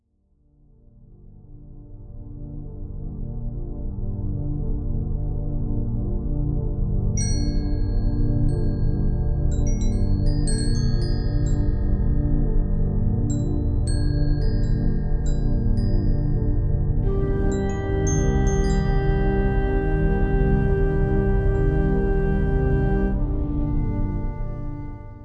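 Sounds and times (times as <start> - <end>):
royalty-free music: 0.0 - 25.2.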